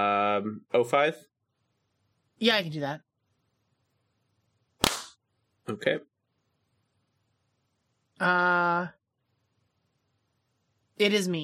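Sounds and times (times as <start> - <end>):
speech: 0.0 - 1.3, 2.4 - 3.1, 5.6 - 6.1, 8.2 - 9.0, 11.0 - 11.4
hand clap for audio sync: 4.8 - 5.2.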